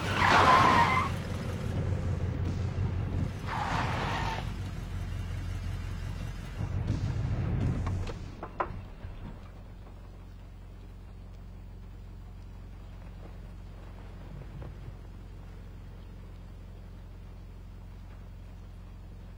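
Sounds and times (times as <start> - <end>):
car tires screeching as it skids to a halt: 0.0 - 1.7, 3.1 - 6.5
car engine idling: 0.0 - 19.3.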